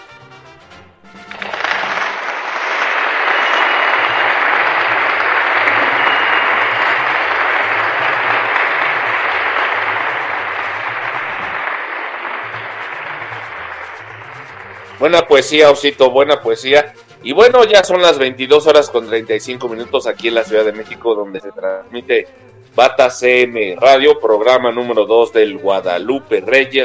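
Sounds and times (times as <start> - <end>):
audience applause: 1.4 - 15.0
speech: 15.0 - 26.8.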